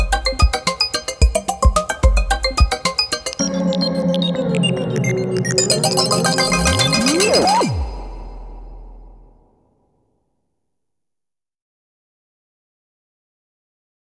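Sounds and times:
electronica music: 0.0s - 9.4s.

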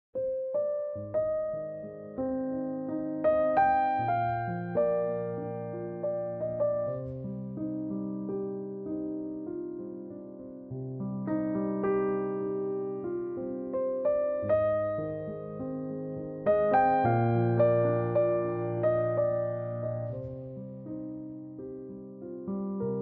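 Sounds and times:
piano layer: 0.2s - 23.0s.

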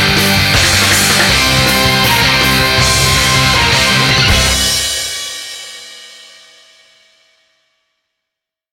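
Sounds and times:
instrumental game title screen theme: 0.1s - 5.3s.

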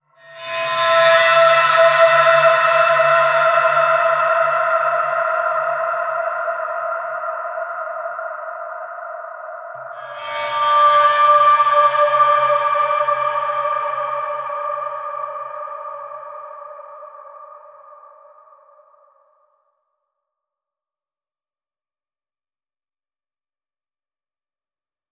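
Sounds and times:
environment stinger: 0.2s - 6.0s, 10.0s - 15.3s.

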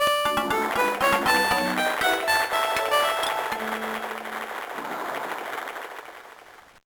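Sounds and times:
Game Boy Advance stage clear jingle: 0.0s - 4.4s.

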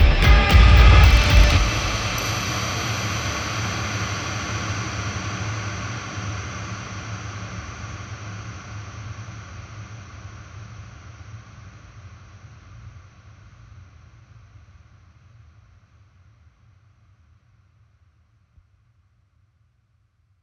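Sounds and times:
metal hell ambient drone: 0.0s - 8.0s.

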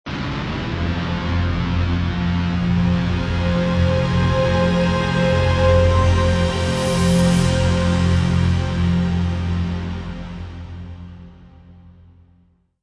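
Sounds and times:
modern foreboding music: 0.6s - 12.0s.

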